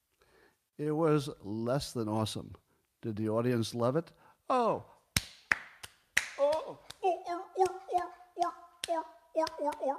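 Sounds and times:
speech: 0.8s - 4.9s, 9.4s - 9.9s
hand claps or slaps: 5.2s - 9.9s
person imitating a seal: 6.4s - 9.9s.

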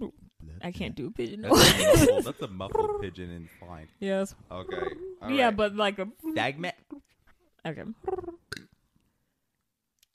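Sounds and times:
speech: 0.6s - 6.8s, 7.6s - 8.2s
human burp: 8.1s - 8.8s.

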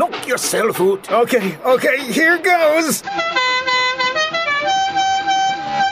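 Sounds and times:
speech: 0.3s - 3.4s
musical car horn instead of train whistle: 3.0s - 5.9s.

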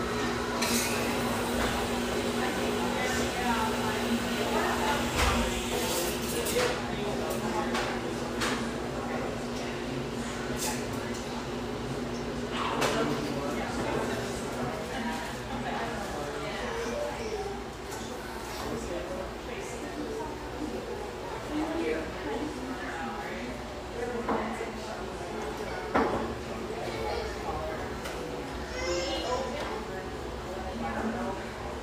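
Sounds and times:
overlapping voices and chatter in a busy café: 0.0s - 31.8s.

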